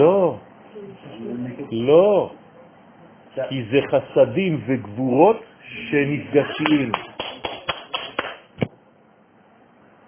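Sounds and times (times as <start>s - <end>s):
speech: 0.0s - 2.4s, 3.4s - 7.1s
hand clapping: 6.6s - 8.7s.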